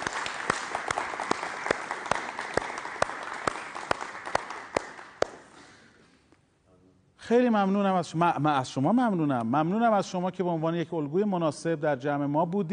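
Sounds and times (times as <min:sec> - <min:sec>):
audience applauding in honour of a family: 0:00.0 - 0:05.5
speech: 0:07.3 - 0:12.7.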